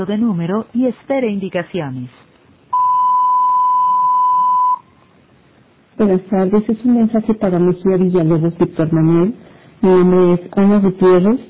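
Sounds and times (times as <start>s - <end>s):
speech: 0.0s - 2.3s, 6.0s - 11.4s
voicemail recording beep tone: 2.7s - 4.9s.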